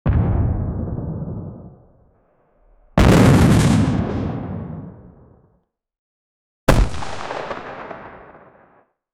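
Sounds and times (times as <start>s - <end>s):
war rocket launch: 0.1s - 5.4s.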